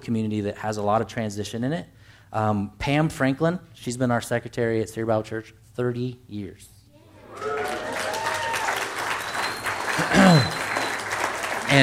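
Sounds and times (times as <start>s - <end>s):
speech: 0.0s - 6.7s
person whooping: 7.0s - 11.0s
roomful of people clapping: 7.2s - 11.8s.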